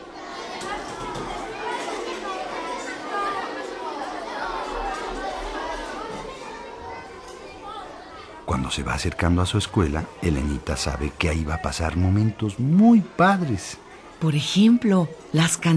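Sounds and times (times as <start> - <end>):
distant children's voices and shouts at kindergarten: 0.0 - 14.3
speech: 8.5 - 15.7.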